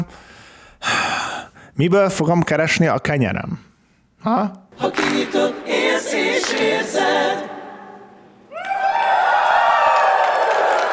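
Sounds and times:
speech: 1.8 - 7.6
cheering and whoops: 8.5 - 10.9
audience applause: 8.6 - 10.9.

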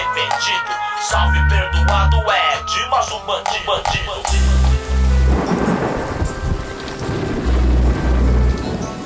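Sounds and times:
speech: 0.2 - 5.0
heavy rain: 3.9 - 9.0
deep rumbling thunder: 4.0 - 9.0.

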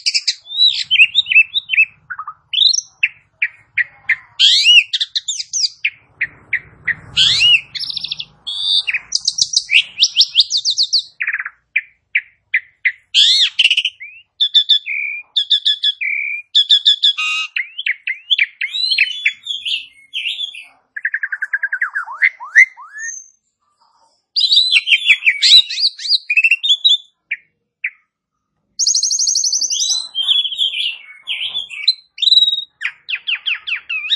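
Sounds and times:
Asian pied starling singing: 0.0 - 23.4, 24.3 - 28.1, 28.8 - 34.1.

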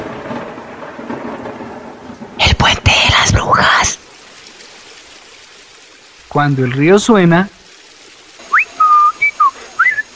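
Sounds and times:
speech: 2.6 - 4.0, 6.4 - 7.6
man whistling in imitation of birdsong: 8.5 - 10.1.

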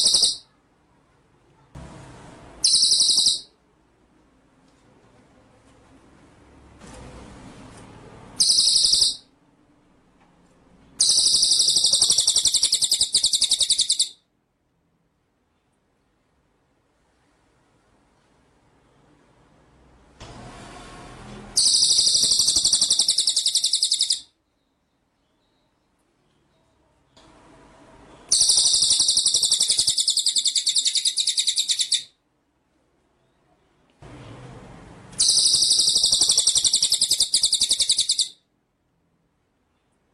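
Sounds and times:
white-rumped shama high buzzing trill: 0.0 - 0.5, 2.6 - 3.6, 8.4 - 9.3, 11.0 - 14.2, 21.6 - 24.3, 28.2 - 32.1, 35.2 - 38.4.

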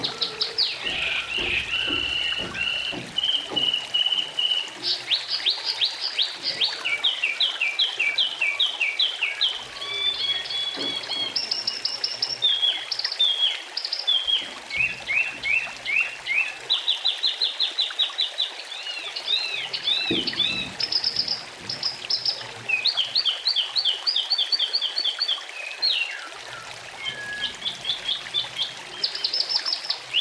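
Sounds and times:
Oriental magpie-robin singing fast repeated sweet notes: 0.0 - 30.1.

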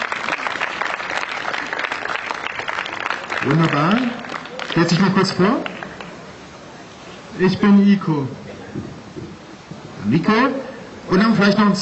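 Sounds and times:
audience applause at an event: 0.0 - 6.2
speech: 3.4 - 5.7, 7.4 - 8.9, 10.0 - 11.7.

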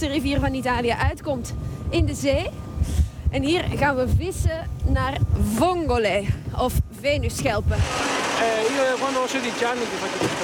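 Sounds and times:
speech: 0.0 - 10.4
motor of a small wooden fishing boat droning during clam fishing: 7.8 - 10.4.

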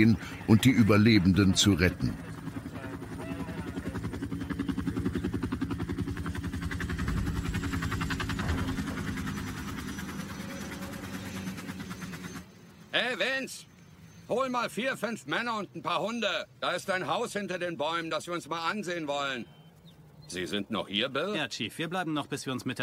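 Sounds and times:
speech: 0.0 - 2.3, 14.6 - 19.6, 20.3 - 22.8
military helicopter rotors thumping: 0.0 - 12.5
short wavering rising-and-falling tone: 7.2 - 12.6.

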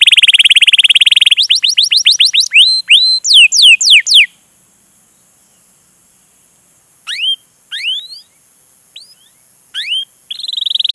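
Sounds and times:
canary lure recording of long continuous vigorous canary song: 0.0 - 4.3, 7.0 - 8.4, 9.0 - 10.9.

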